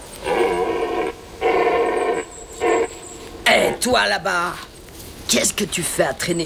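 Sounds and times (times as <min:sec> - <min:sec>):
stag bellowing: 0:00.0 - 0:04.1
speech: 0:03.6 - 0:04.7, 0:05.3 - 0:06.4.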